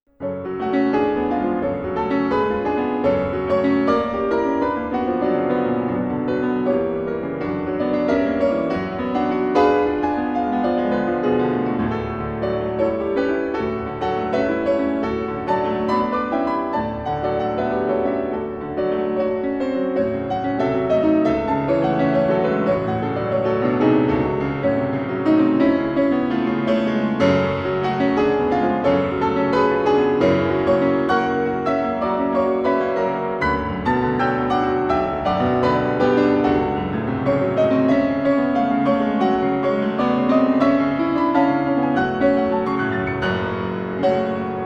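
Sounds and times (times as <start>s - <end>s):
passionate allegro piece: 0.1s - 44.6s.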